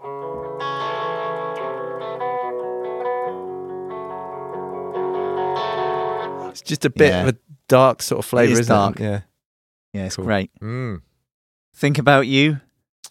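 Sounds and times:
distorted electric guitar song intro: 0.0s - 6.6s
speech: 6.7s - 9.3s, 10.0s - 11.1s, 11.7s - 12.6s.

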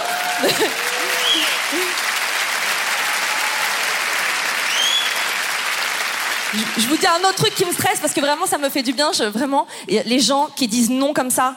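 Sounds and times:
audience applause: 0.0s - 9.1s
speech: 0.4s - 0.9s, 6.5s - 11.5s.

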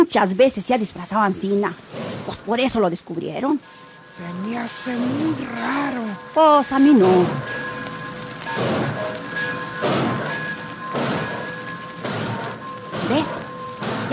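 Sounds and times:
speech: 0.1s - 7.6s
radio-drama effect of a train starting to pull away: 3.8s - 14.1s.

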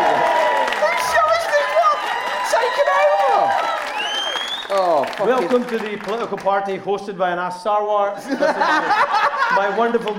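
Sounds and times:
audience cheering: 0.0s - 6.2s
speech: 5.2s - 10.1s
laughter: 8.2s - 10.1s.

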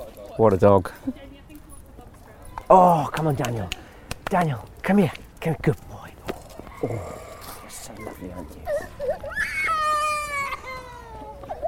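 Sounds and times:
speech: 0.4s - 1.3s, 2.7s - 5.9s, 6.8s - 7.2s, 7.8s - 9.0s
child crying in public: 6.7s - 11.6s.

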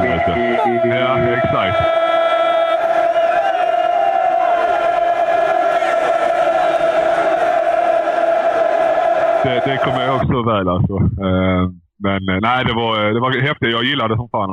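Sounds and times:
football crowd roaring: 0.0s - 10.2s
speech: 9.4s - 14.5s.

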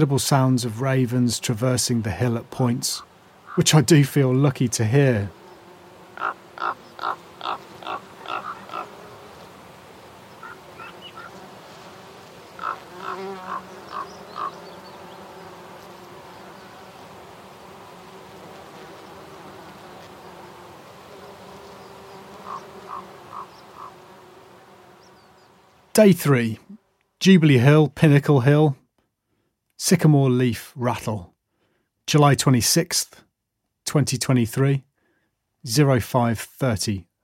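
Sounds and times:
speech: 0.0s - 5.4s, 26.0s - 28.8s, 29.8s - 31.3s, 32.1s - 33.2s, 33.9s - 34.9s, 35.6s - 37.2s
bees buzzing on a hillside: 0.0s - 26.0s.

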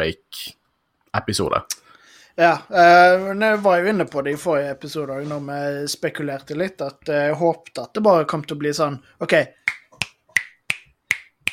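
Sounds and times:
speech: 0.0s - 1.8s, 2.4s - 9.7s
crisp finger snaps: 9.7s - 11.5s.

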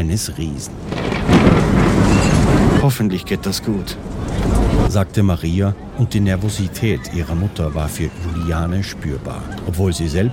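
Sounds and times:
speech: 0.0s - 10.3s
thunderclap: 0.7s - 5.0s.

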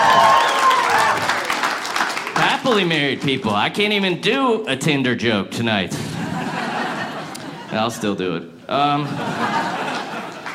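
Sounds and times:
audience applause: 0.0s - 3.4s, 9.7s - 10.5s
speech: 2.7s - 6.0s, 7.7s - 9.6s
laughter: 6.0s - 10.5s.

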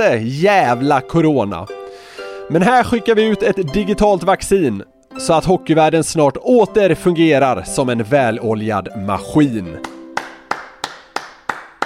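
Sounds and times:
speech: 0.0s - 1.8s, 2.5s - 9.9s
sharp hand claps: 9.8s - 11.8s.

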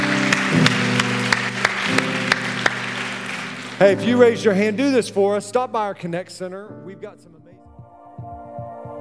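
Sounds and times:
round of applause: 0.0s - 4.6s
speech: 3.8s - 7.4s.

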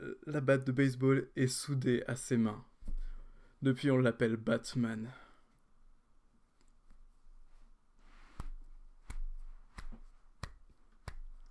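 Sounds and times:
speech: 0.2s - 2.7s, 3.6s - 5.2s
soft hand claps: 8.4s - 11.4s.

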